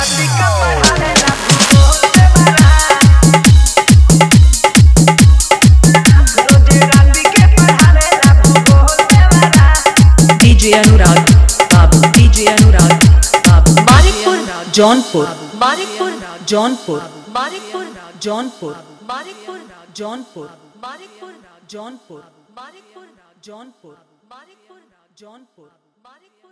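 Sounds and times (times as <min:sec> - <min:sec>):
hard dholki bass mix: 0:00.0 - 0:18.4.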